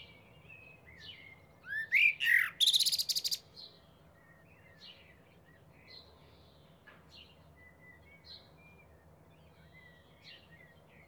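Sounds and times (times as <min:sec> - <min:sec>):
Eurasian blackbird Turdus merula singing fluted warbling phrases with high squeaky notes: 0:00.4 - 0:03.5.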